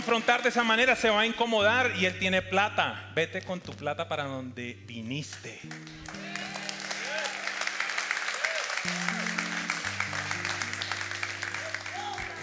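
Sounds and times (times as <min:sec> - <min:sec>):
speech: 0:00.0 - 0:06.2
audience applause: 0:05.7 - 0:12.4.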